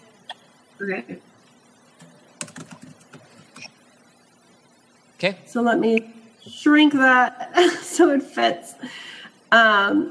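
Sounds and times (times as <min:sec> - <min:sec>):
speech: 0:00.8 - 0:01.3, 0:05.2 - 0:10.0
computer keyboard typing an email address: 0:02.0 - 0:03.8.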